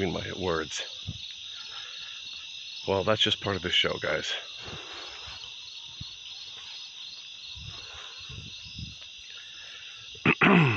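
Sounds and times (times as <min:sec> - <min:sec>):
speech: 0:00.0 - 0:01.0, 0:02.8 - 0:04.8, 0:10.5 - 0:10.7
throat clearing: 0:10.2 - 0:10.7.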